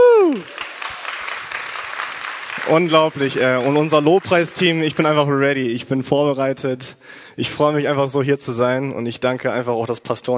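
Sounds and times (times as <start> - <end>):
falling whoop: 0.0 - 0.6
crowd applauding: 0.0 - 5.4
speech: 2.7 - 10.3.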